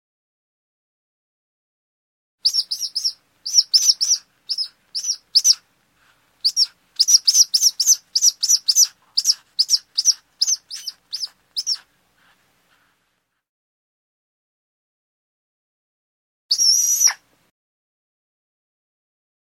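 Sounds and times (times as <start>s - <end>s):
falcon sharp piercing calls: 2.4s - 5.6s, 6.4s - 11.9s.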